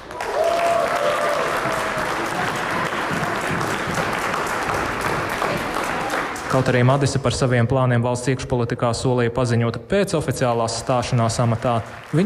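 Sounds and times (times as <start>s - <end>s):
ovation in the council hall: 0.0s - 6.8s, 11.1s - 12.2s
speech: 6.5s - 12.2s.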